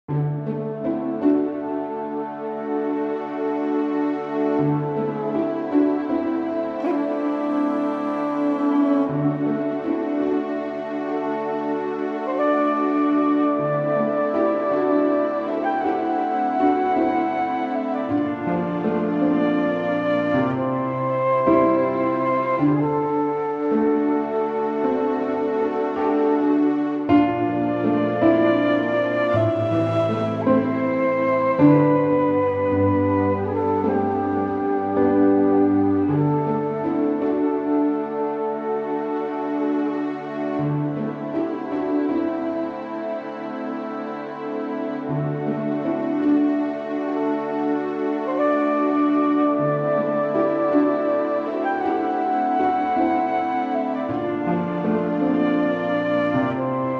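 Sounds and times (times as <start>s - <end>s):
lobby music: 0.1s - 56.9s.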